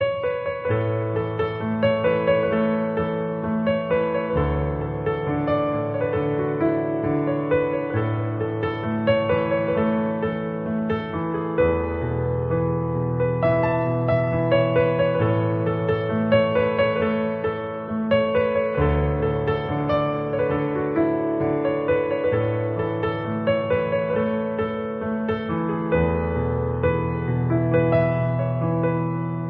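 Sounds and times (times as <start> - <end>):
instrumental piano cover background music: 0.0 - 29.4.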